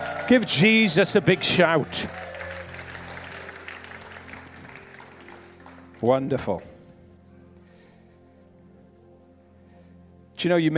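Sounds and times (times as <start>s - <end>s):
audience clapping: 0.0s - 6.3s
speech: 0.3s - 2.2s, 6.0s - 6.8s, 10.4s - 10.7s.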